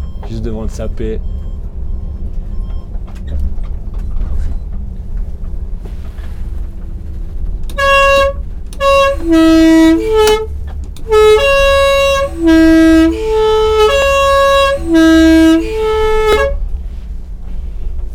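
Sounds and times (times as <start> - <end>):
speech: 0.3 - 1.4, 9.2 - 10.5
postal bus horn honking: 7.7 - 16.8.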